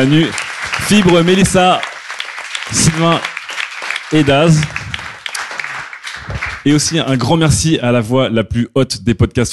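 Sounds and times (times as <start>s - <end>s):
speech: 0.0s - 1.9s, 2.7s - 3.3s, 4.1s - 4.8s, 6.6s - 9.5s
audience applause: 0.0s - 7.2s.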